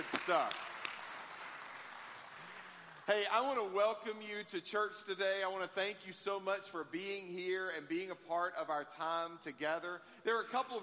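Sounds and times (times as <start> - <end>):
audience applause: 0.0 - 3.1
speech: 0.3 - 0.7, 3.1 - 10.8.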